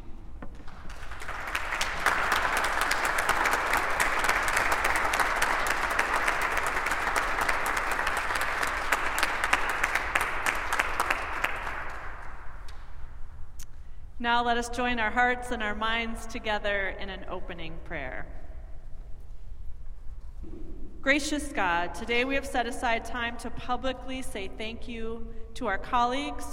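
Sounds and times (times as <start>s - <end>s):
crowd applause: 0.6s - 12.3s
speech: 14.3s - 18.4s, 21.0s - 26.5s.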